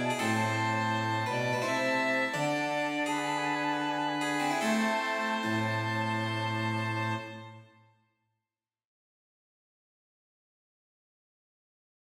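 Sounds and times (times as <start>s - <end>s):
sarabande for flute, violin, cello and harpsichord: 0.0s - 7.7s.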